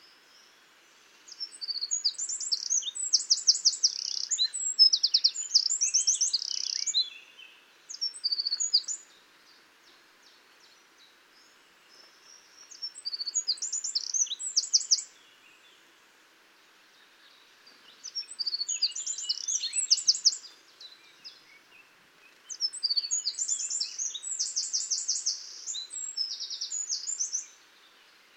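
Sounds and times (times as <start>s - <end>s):
Eurasian wren song of ringing trills: 1.3s - 9.1s, 12.6s - 15.2s, 17.9s - 20.6s, 22.3s - 27.6s.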